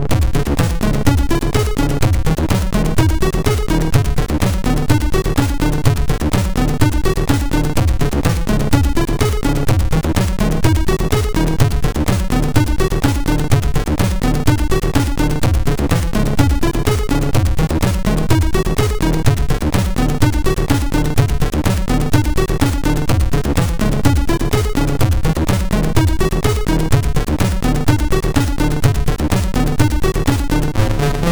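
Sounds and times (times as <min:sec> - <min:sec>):
MOS 6581R2 SID chip music: 0:00.1 - 0:31.3.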